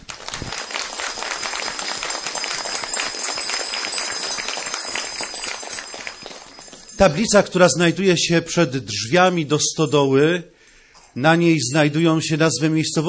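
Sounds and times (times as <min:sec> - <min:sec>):
warm applause: 0:00.0 - 0:07.4
speech: 0:07.0 - 0:10.6, 0:11.2 - 0:13.0.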